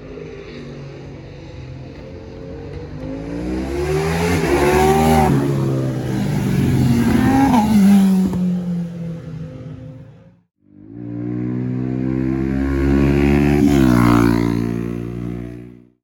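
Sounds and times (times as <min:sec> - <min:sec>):
motorcycle passing: 0:00.0 - 0:16.0.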